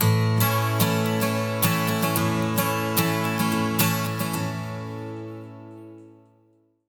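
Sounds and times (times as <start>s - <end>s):
major 12-string acoustic guitar loop: 0.0s - 6.5s.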